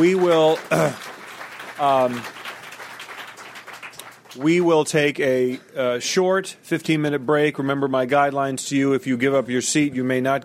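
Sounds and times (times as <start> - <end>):
speech: 0.0 - 1.2, 1.8 - 2.4, 4.4 - 10.4
crowd applause for panelists: 0.0 - 5.0.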